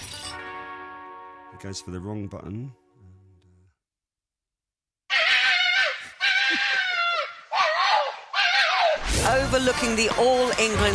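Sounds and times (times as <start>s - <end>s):
speech: 1.6s - 2.8s, 9.3s - 10.9s
fox screaming: 5.1s - 9.0s.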